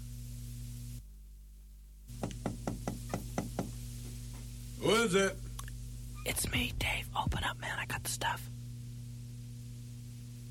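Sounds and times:
low steady hum: 0.0 - 10.4
rapid knocking on a door: 2.2 - 3.8
speech: 4.8 - 5.4, 6.3 - 8.5.

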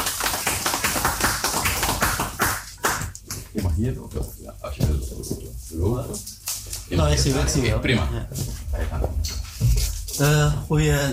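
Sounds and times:
audience applause: 0.0 - 3.2
speech: 3.6 - 11.1.

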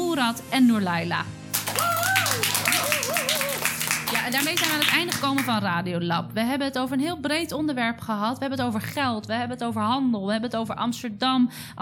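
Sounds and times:
speech: 0.2 - 1.4, 4.2 - 11.8
audience applause for panel guests at a Dutch talk event: 1.5 - 5.5
person whooping: 1.6 - 3.9.

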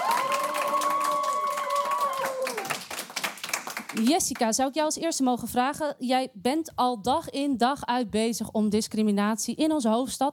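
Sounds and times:
audience cheering: 0.0 - 3.0
audience applause: 0.0 - 4.1
speech: 4.0 - 10.3.

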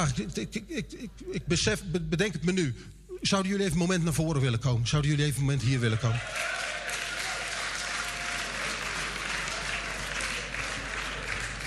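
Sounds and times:
speech: 0.0 - 6.6
audience applause: 6.0 - 11.6.

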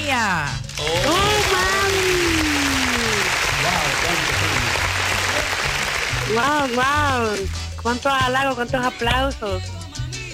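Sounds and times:
applause: 0.6 - 7.8
speech: 6.3 - 9.8.

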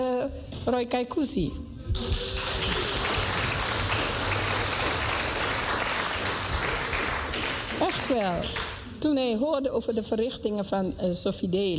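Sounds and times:
speech: 0.2 - 2.2, 7.8 - 11.7
audience applause: 1.9 - 8.9.

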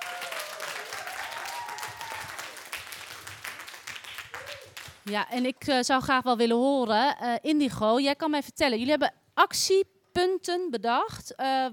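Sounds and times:
applause: 0.0 - 5.5
speech: 5.1 - 11.7.

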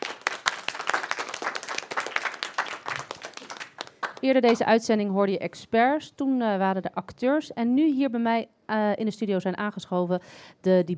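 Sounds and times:
audience applause: 0.0 - 4.2
speech: 4.2 - 10.9.

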